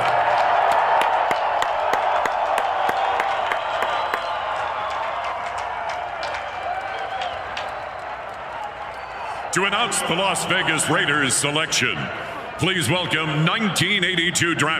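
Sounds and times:
stadium crowd applause: 0.0s - 14.7s
speech: 9.5s - 14.7s.

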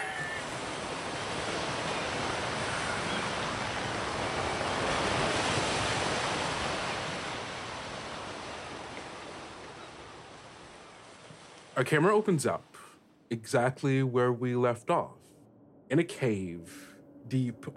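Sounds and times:
ocean waves: 0.0s - 13.2s
wind: 0.0s - 17.7s
speech: 11.8s - 15.2s, 15.9s - 17.7s.

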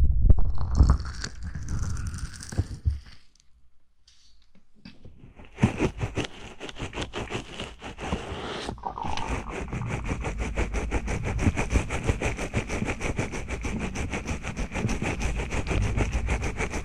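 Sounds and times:
microphone scratching: 0.0s - 3.2s, 5.2s - 16.8s
heavy low rubbing and thumps: 5.4s - 16.8s.

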